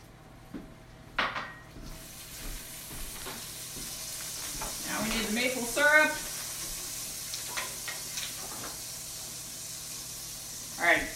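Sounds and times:
frying crackle: 0:01.8 - 0:11.1
vinegar sizzling in a hot cooking pan with rosemary: 0:01.8 - 0:11.1.

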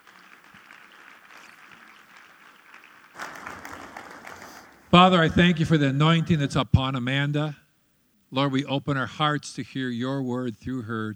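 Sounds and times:
audience applause: 0:00.0 - 0:04.9
speech: 0:04.9 - 0:07.6, 0:08.3 - 0:11.1.

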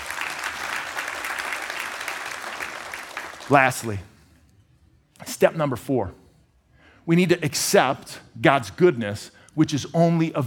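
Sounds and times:
audience applause: 0:00.0 - 0:03.6
speech: 0:03.5 - 0:04.1, 0:05.2 - 0:06.2, 0:07.1 - 0:10.4.

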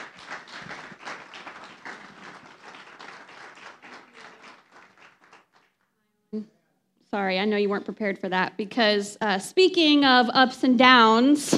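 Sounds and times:
audience applause: 0:00.0 - 0:05.8
speech: 0:06.3 - 0:11.5.

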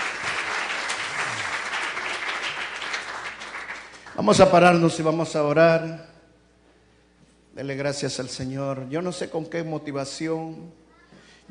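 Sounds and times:
loud audience applause: 0:00.0 - 0:04.4
speech: 0:04.2 - 0:06.1, 0:07.6 - 0:10.8.

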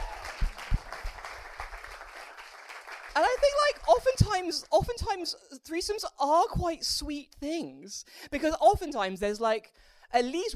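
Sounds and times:
small round of applause from a few people: 0:00.0 - 0:04.5
speech: 0:03.2 - 0:10.5.

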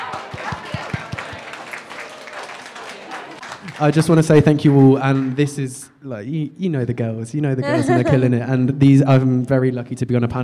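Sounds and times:
audience applause at a live panel event on loneliness: 0:00.0 - 0:05.8
speech: 0:03.8 - 0:10.4
laughter: 0:07.5 - 0:08.6.

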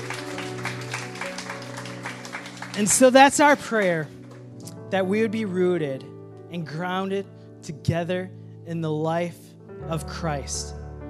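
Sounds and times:
audience applause: 0:00.0 - 0:04.4
speech: 0:02.8 - 0:04.2, 0:04.9 - 0:10.8.

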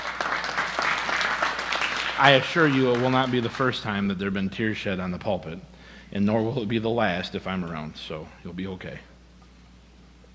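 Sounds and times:
audience applause: 0:00.0 - 0:04.0
speech: 0:02.2 - 0:09.1.

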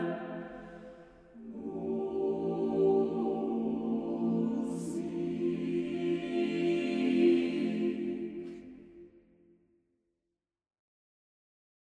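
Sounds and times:
SATB four-part choir singing: 0:00.0 - 0:09.0.

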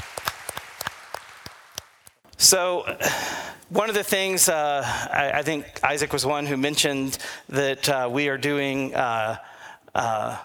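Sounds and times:
audience applause for young adults: 0:00.0 - 0:02.2
speech: 0:02.4 - 0:10.4.

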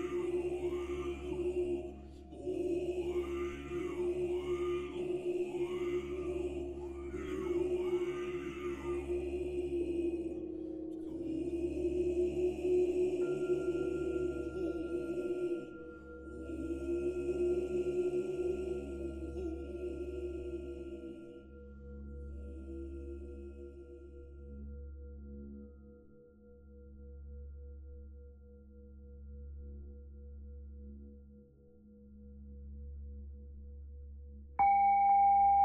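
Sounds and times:
Buddhist chanting low droning voice: 0:00.0 - 0:25.5
singing bells long ringing tones: 0:34.6 - 0:35.6.

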